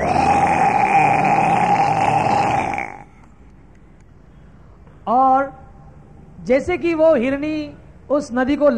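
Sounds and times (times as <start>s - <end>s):
lion roaring: 0.0s - 3.1s
speech: 6.5s - 8.7s.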